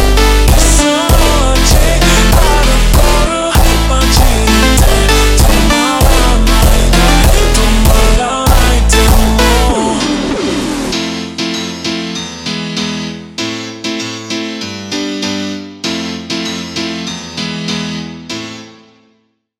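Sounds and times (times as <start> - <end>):
ultra slowed phonk music: 0.0 - 14.0.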